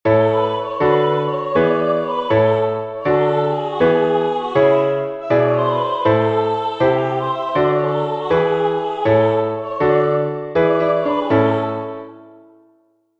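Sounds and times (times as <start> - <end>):
piano: 0.1 - 13.1.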